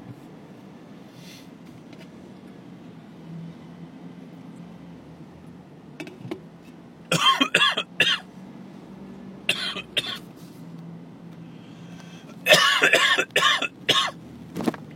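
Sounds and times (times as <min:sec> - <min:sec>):
person coughing after almost choking on a drink: 0:07.1 - 0:08.2, 0:09.5 - 0:10.2, 0:12.5 - 0:14.2.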